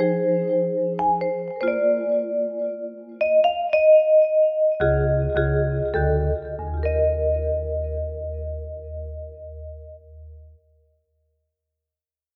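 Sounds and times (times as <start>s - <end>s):
vibraphone: 0.0s - 9.8s.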